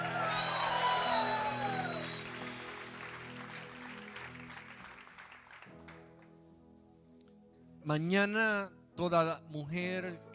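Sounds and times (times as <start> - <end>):
shouts of praise: 0.0 - 2.2
audience applause: 0.0 - 6.0
speech: 7.8 - 10.3.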